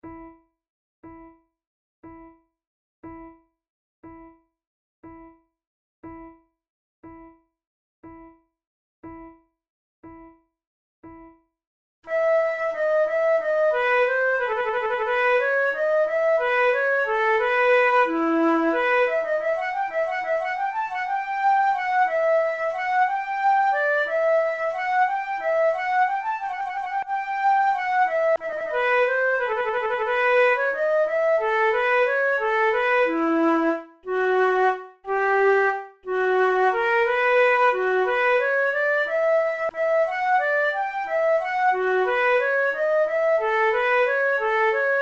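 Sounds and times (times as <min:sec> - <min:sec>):
two flutes playing an air: 0:12.1 - 0:44.9.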